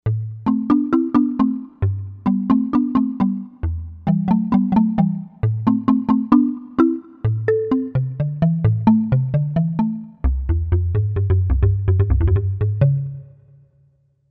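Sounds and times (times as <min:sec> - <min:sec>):
Novation UltraNova synthesizer: 0:00.1 - 0:13.5.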